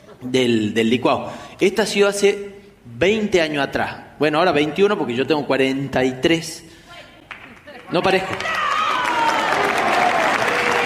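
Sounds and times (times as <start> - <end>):
speech: 0.2 - 6.7, 7.9 - 8.6
applause: 7.2 - 10.8.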